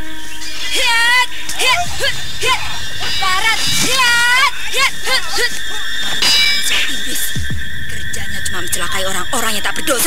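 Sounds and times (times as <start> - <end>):
steady hum: 0.0 - 10.0
people shouting and grunting in a brawl in a forest: 0.6 - 7.6
speech: 1.9 - 6.2, 8.7 - 10.0.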